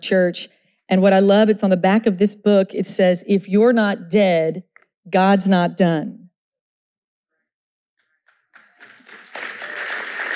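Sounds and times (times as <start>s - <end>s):
speech: 0.0s - 6.2s
audience clapping: 8.2s - 10.3s.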